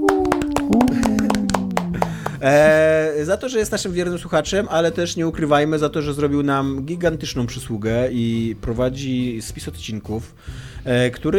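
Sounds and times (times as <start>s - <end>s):
hand claps after an award announcement: 0.0s - 2.8s
person cheering: 0.0s - 2.8s
speech: 2.4s - 11.3s.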